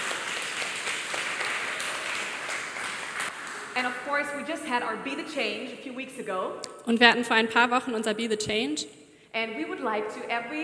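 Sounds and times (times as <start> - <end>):
crowd applause: 0.0 - 3.8
speech: 3.8 - 10.6.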